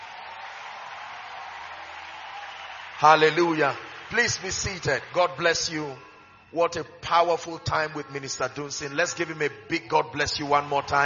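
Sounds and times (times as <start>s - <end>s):
large group clapping: 0.0s - 8.3s
speech: 3.0s - 11.0s.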